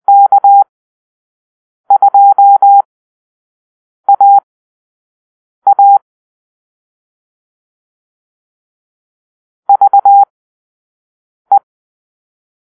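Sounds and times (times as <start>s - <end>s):
morse code call-sign beeps: 0.1s - 0.6s, 1.9s - 2.8s, 4.1s - 4.4s, 5.7s - 6.0s, 9.7s - 10.3s.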